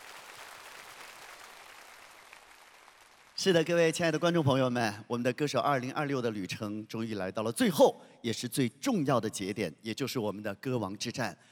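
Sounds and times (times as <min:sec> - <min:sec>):
audience applause: 0:00.0 - 0:03.4
speech: 0:03.4 - 0:11.5.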